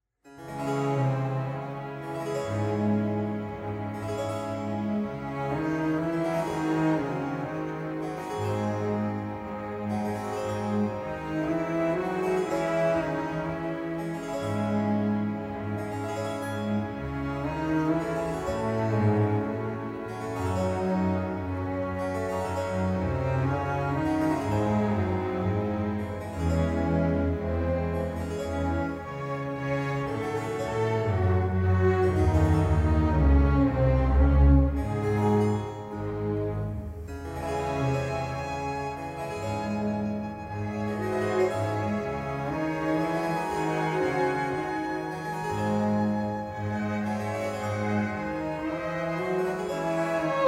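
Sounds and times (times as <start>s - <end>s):
violin concerto in E major: 0.4s - 50.4s.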